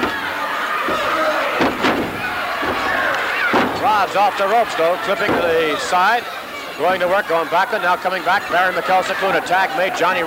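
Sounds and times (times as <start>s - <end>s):
wrestler slammed down to the canvas: 0.9s - 3.8s
speech: 3.8s - 10.2s.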